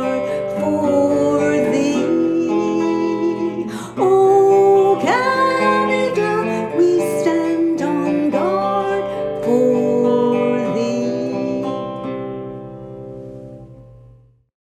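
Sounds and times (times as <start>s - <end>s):
national anthem sung in English: 0.0s - 11.7s.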